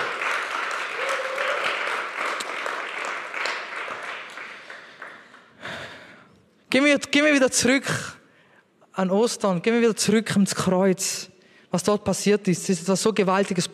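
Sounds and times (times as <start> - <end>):
audience applause: 0.0 - 5.5
faint cheer: 0.8 - 2.0
speech: 6.7 - 8.2, 9.0 - 13.7.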